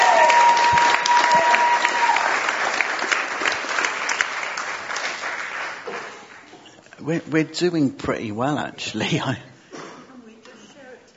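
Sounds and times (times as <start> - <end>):
audience clapping: 0.0 - 6.9
speech: 7.1 - 9.5.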